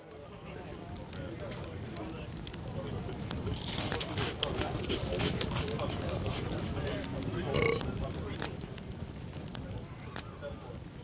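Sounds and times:
crowd ambience: 0:00.0 - 0:11.0.

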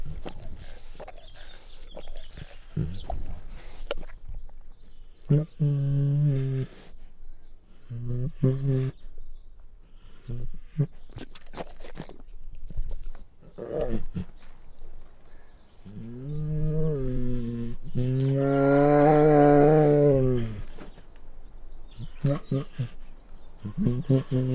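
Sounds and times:
male Bengal tiger growling and snarling: 0:00.0 - 0:06.9, 0:13.0 - 0:14.4, 0:15.8 - 0:20.8, 0:21.9 - 0:24.5.

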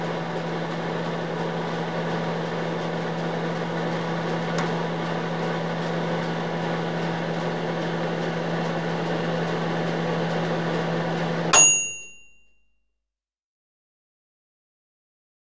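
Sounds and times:
oven: 0:00.1 - 0:12.1.

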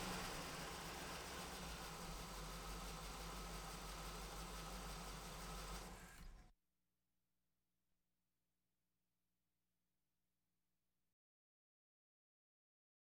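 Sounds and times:
various automobiles: 0:00.0 - 0:06.4.

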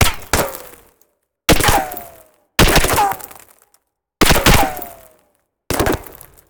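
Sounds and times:
bullet ricochet: 0:00.0 - 0:00.6, 0:01.5 - 0:03.4, 0:04.2 - 0:05.1.

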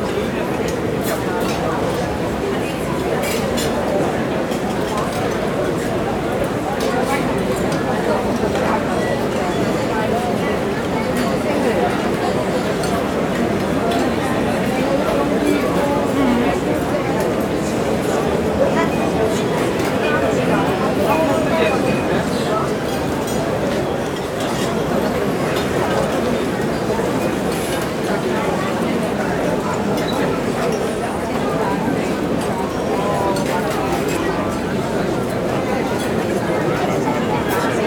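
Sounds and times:
restaurant crowd walla on a large outdoor patio: 0:00.0 - 0:37.8.

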